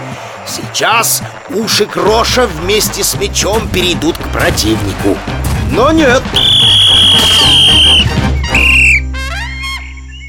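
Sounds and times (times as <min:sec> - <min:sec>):
speech: 0:00.5 - 0:08.2
referee's whistle: 0:06.3 - 0:10.2.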